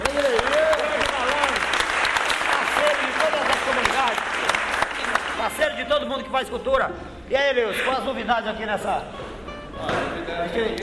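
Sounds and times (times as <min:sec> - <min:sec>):
applause for a guest at a cultural event: 0:00.0 - 0:05.8
speech: 0:06.1 - 0:09.2, 0:09.8 - 0:10.8.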